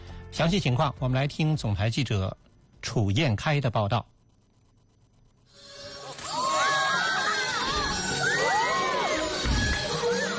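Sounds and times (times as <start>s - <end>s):
speech: 0.4s - 4.1s
opera audience cheering: 6.2s - 10.3s.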